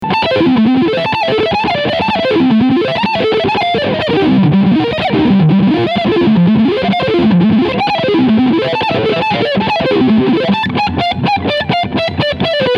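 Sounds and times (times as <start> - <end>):
PRS Custom 24 Floyd electric guitar lead on front humbucker: 0.0 - 12.7.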